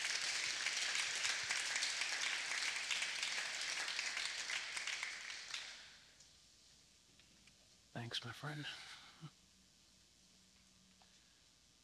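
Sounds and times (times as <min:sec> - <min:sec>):
audience round of applause: 0:00.0 - 0:05.9
speech: 0:08.0 - 0:09.4.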